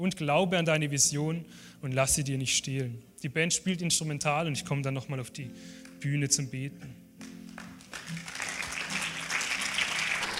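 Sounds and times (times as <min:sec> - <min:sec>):
speech: 0:00.0 - 0:07.0
audience applause: 0:07.5 - 0:10.3.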